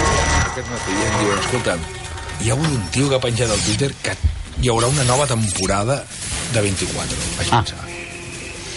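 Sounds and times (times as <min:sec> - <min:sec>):
old alarm clock bell ringing: 0:00.1 - 0:01.6
speech: 0:01.6 - 0:07.8.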